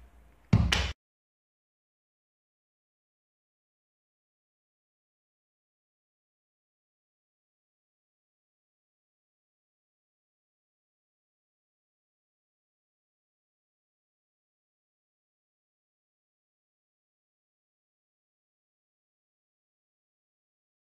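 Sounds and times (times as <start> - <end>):
hitting a wall: 0.5 - 1.0.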